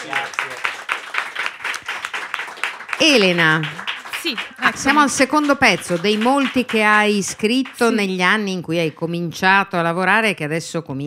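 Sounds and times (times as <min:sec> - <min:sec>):
audience applause at a live stage event: 0:00.0 - 0:08.5
speech: 0:03.0 - 0:11.0.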